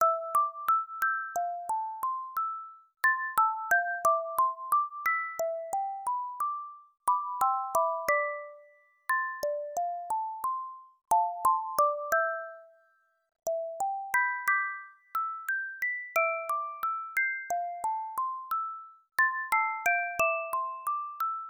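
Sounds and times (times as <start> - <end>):
music box: 0.0 - 21.4.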